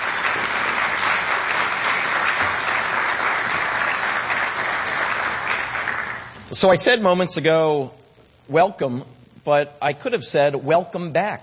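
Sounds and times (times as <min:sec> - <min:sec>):
audience round of applause: 0:00.0 - 0:06.4
speech: 0:06.5 - 0:11.4.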